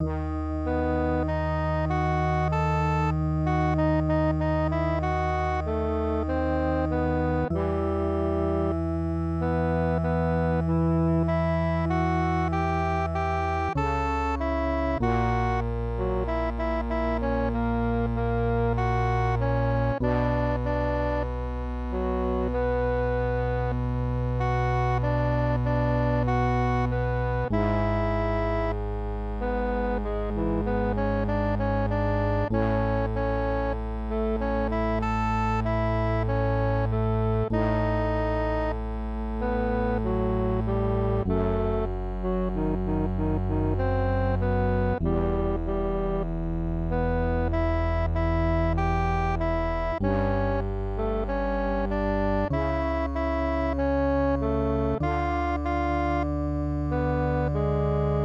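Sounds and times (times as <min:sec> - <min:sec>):
MIDI music: 0:00.0 - 0:58.2.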